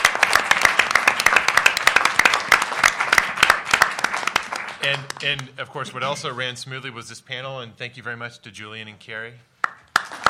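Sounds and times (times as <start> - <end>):
crowd applause: 0.0 - 5.8, 9.9 - 10.2
speech: 4.8 - 9.5.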